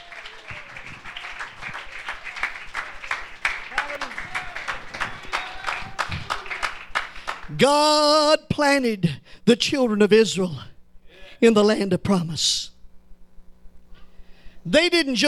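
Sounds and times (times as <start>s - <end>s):
audience clapping hands: 0.0s - 7.6s
speech: 7.6s - 10.7s, 11.4s - 12.7s, 14.6s - 15.2s.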